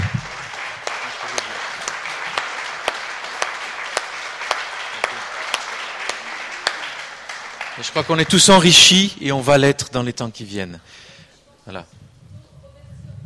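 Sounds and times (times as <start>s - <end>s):
audience applause: 0.0s - 9.4s
speech: 7.8s - 11.1s, 11.7s - 12.0s.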